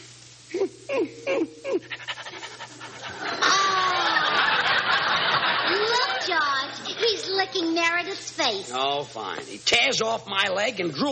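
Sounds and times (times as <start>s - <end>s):
speech: 0.6s - 2.0s, 8.2s - 11.0s
laughter: 0.6s - 7.5s
St. Bernard dog panting: 2.0s - 3.2s.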